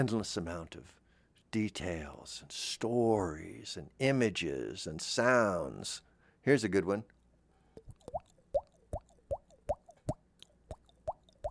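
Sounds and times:
speech: 0.0 - 7.2
hollow drippy water-like plops made by slapping a cheek: 7.8 - 11.4.

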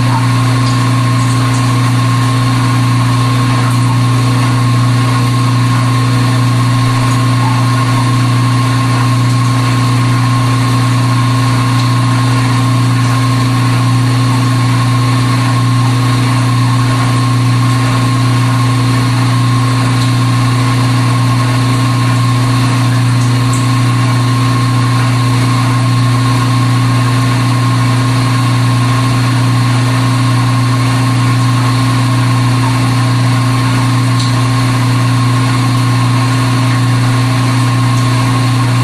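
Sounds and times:
dishwasher running in the kitchen at Dorchminster Mansion: 0.0 - 38.8.

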